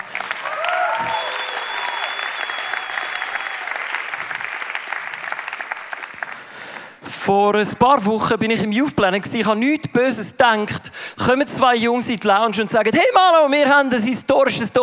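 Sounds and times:
audience applause: 0.0s - 7.0s
speech: 7.2s - 14.8s.

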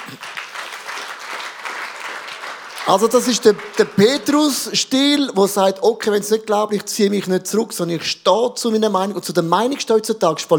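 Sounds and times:
audience applause: 0.0s - 4.8s
speech: 0.1s - 0.3s, 2.9s - 10.5s.

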